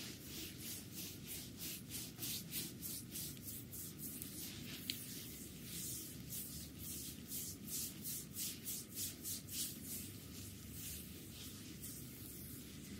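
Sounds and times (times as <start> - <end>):
hands rubbing over skin during an abdominal massage: 0.0 - 12.9.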